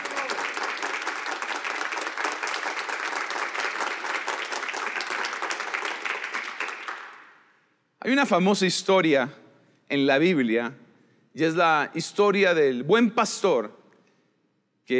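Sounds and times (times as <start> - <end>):
audience applause: 0.0 - 7.4
speech: 8.0 - 10.8, 11.4 - 13.8.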